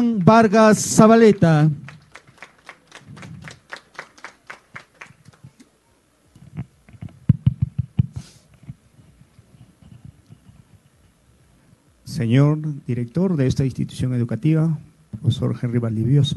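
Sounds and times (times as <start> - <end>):
speech: 0.0 - 1.9, 12.2 - 16.3
audience applause: 0.0 - 5.6.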